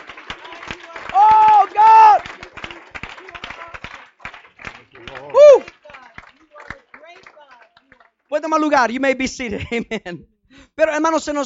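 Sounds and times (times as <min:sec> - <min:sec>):
crowd clapping hands: 0:00.0 - 0:08.6
speech: 0:08.4 - 0:11.4.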